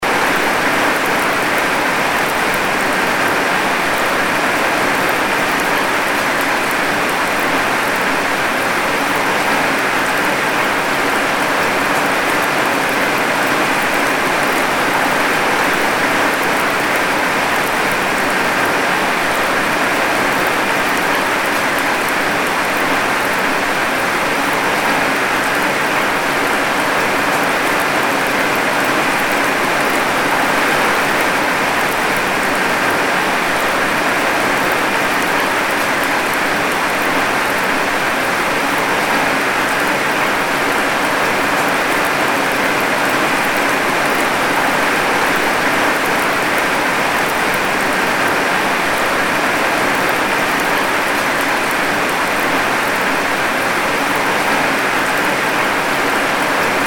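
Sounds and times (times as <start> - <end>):
rain: 0.0 - 56.8.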